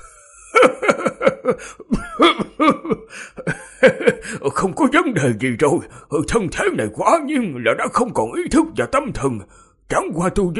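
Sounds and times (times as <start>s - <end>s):
violent dry coughing: 0.0s - 4.6s
old man laughing: 0.0s - 5.2s
speech: 1.5s - 10.5s.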